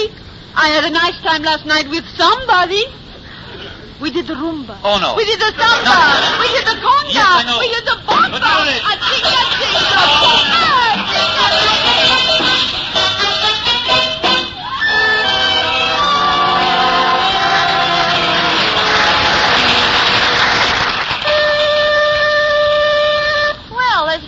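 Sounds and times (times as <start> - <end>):
speech: 0.6 - 3.0, 4.0 - 12.1
laughter: 5.6 - 13.0, 16.2 - 20.9
shifting droning tones: 8.2 - 23.8
five o'clock factory whistle: 8.4 - 23.8.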